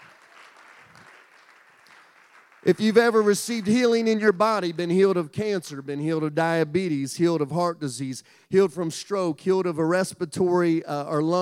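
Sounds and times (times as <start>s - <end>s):
congregation clapping hands in praise during a church service: 0.0s - 4.7s
speech: 2.6s - 11.3s.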